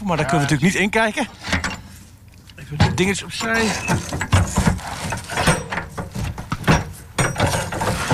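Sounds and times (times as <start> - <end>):
speech: 0.0 - 1.6, 2.7 - 4.6
blue shipping container door clanking, creaking and scraping open: 2.7 - 8.1.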